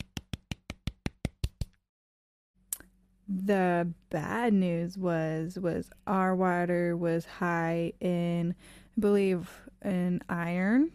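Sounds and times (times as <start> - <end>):
sharp hand claps: 0.0 - 1.8
speech: 3.3 - 10.9.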